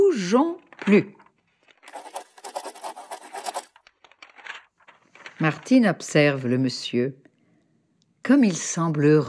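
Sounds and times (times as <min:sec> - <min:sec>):
speech: 0:00.2 - 0:01.2, 0:05.4 - 0:07.2, 0:08.3 - 0:09.2
pencil scratching on paper while drawing: 0:01.8 - 0:03.8.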